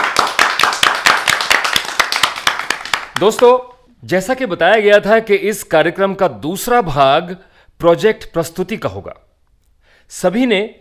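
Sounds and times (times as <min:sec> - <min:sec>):
audience clapping: 0:00.0 - 0:03.6
speech: 0:03.2 - 0:09.3, 0:10.1 - 0:10.7.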